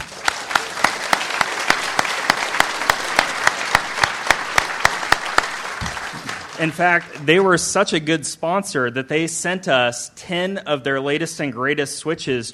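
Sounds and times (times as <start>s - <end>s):
audience applause: 0.0s - 7.6s
speech: 6.6s - 12.5s.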